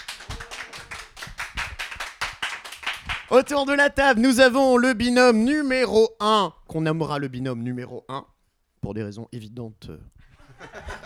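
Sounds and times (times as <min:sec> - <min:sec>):
audience applause: 0:00.0 - 0:03.3
speech: 0:03.3 - 0:10.8
laughter: 0:10.4 - 0:11.0.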